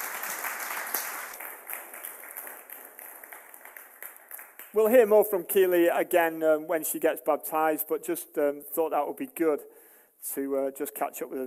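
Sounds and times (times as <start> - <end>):
audience applause: 0.0 - 4.8
speech: 4.7 - 11.4.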